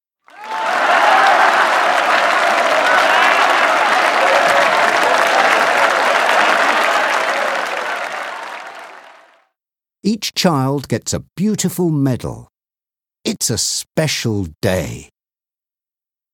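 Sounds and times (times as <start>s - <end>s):
audience applause: 0.2s - 9.4s
speech: 10.3s - 12.5s, 13.2s - 15.1s.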